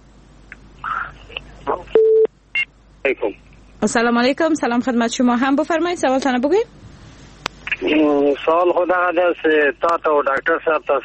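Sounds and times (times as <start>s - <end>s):
voice fragments: 0.8s - 2.0s, 3.1s - 3.6s, 7.6s - 11.0s
telephone busy tone after a radio call-in caller is disconnected: 2.0s - 2.3s
speech: 3.0s - 6.9s, 7.8s - 11.0s.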